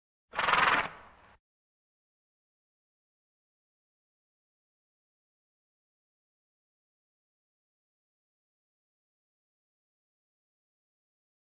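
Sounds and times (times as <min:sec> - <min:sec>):
farm animal snorts: 0:00.4 - 0:01.2.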